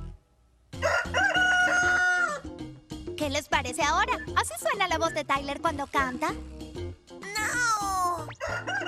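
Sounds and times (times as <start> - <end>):
rooster crowing: 0.8 - 2.5, 8.4 - 8.8
speech: 3.3 - 6.6.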